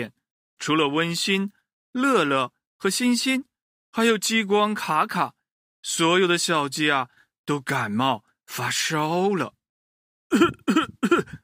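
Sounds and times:
speech: 0.0 - 9.6, 10.3 - 11.3
voice imitating coughing: 10.3 - 11.4.

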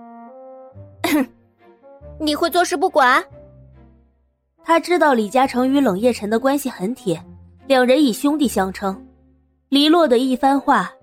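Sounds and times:
light cough: 1.0 - 1.3
speech: 1.1 - 1.4, 2.2 - 3.4, 4.7 - 9.1, 9.7 - 11.0.

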